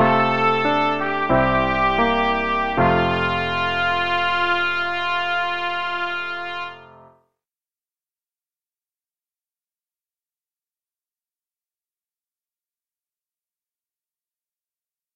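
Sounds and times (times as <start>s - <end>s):
trumpet melody: 0.0s - 7.2s.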